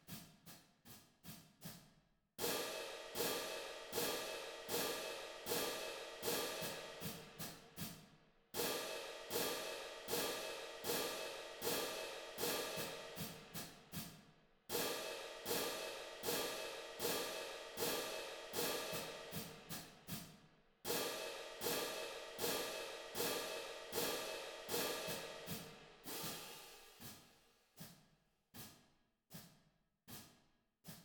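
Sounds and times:
cymbals: 2.4s - 7.3s, 8.6s - 14.1s, 14.7s - 20.2s, 20.9s - 27.2s.

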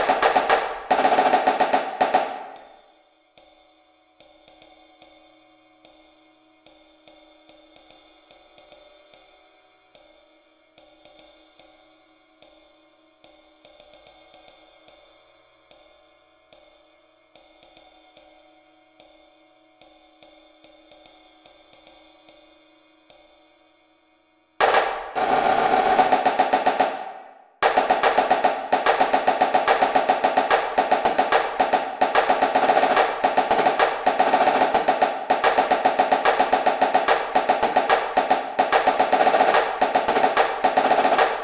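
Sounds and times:
snare drum: 0.0s - 2.8s, 24.6s - 41.4s.

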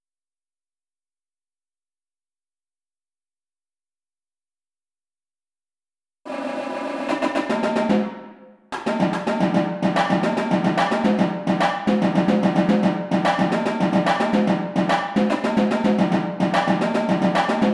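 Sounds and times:
tenor drums: 6.3s - 17.7s.

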